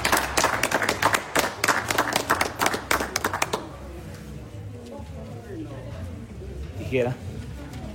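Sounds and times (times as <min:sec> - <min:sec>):
applause: 0:00.0 - 0:03.7
speech: 0:06.9 - 0:07.2.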